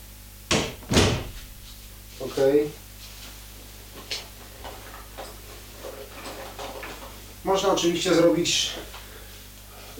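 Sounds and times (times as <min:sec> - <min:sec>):
door being opened and closed: 0:00.5 - 0:01.6
speech: 0:02.3 - 0:02.8, 0:07.4 - 0:09.0.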